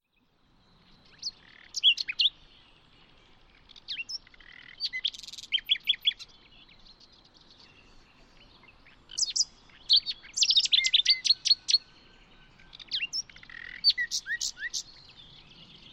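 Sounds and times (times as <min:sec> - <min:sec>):
bird song of thin whistles, quick slurred notes and short trills: 0:00.0 - 0:15.9.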